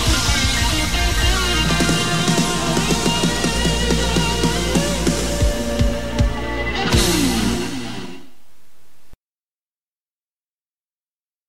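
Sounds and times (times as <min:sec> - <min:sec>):
guitar solo: 0:00.0 - 0:08.3.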